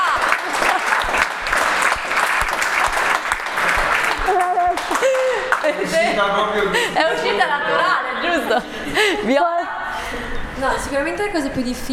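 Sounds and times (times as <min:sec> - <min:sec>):
audience applause: 0:00.0 - 0:06.0
laughter: 0:00.0 - 0:10.5
speech: 0:06.2 - 0:09.6, 0:10.6 - 0:11.9.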